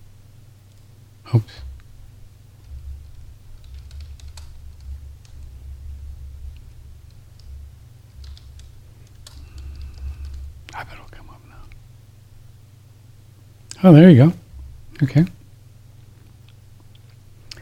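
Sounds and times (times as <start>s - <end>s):
low hum: 0.0s - 17.6s
speech: 1.3s - 1.7s, 13.8s - 14.4s, 15.0s - 15.4s
typing on a computer keyboard: 3.6s - 5.5s, 8.2s - 10.5s.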